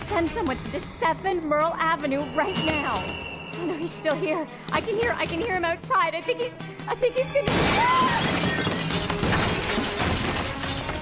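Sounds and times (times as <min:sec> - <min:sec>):
speech: 0:00.1 - 0:08.7
window glass shattering: 0:07.5 - 0:11.0.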